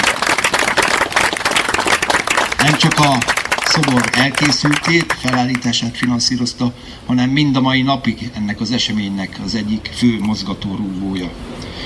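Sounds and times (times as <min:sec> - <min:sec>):
audience at a memorial ceremony applauding: 0:00.0 - 0:06.2
speech: 0:02.6 - 0:11.7.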